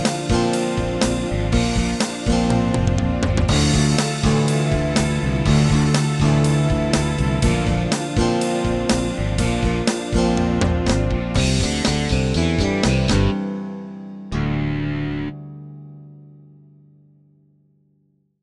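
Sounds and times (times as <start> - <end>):
rock power sync synthesizer: 0.0 - 13.5, 14.3 - 15.5.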